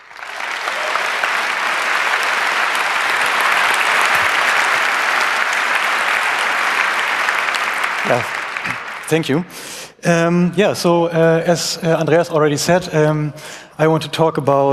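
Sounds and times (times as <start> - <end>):
audience applause welcoming a speaker at a security talk: 0.0 - 9.7
speech: 8.1 - 14.7.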